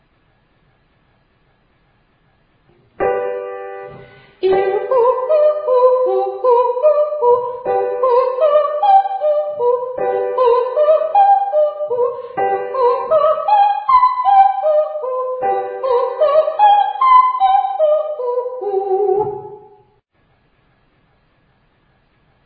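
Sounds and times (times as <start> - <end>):
person singing ascending triads and octaves to high D: 4.4 - 19.7.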